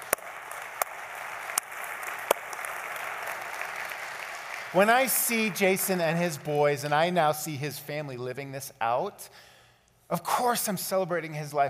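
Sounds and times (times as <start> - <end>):
audience applause: 0.0 - 6.9
speech: 4.7 - 9.5, 10.1 - 11.6.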